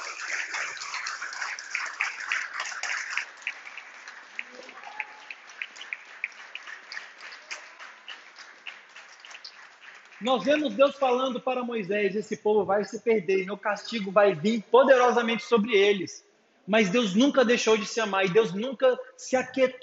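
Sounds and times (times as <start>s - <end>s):
crowd of people applauding: 0.0s - 11.6s
speech: 10.2s - 19.8s.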